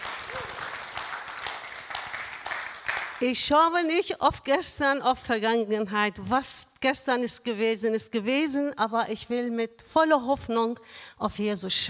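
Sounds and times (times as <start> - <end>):
congregation clapping at a church service: 0.0 - 3.4
speech: 3.2 - 11.8.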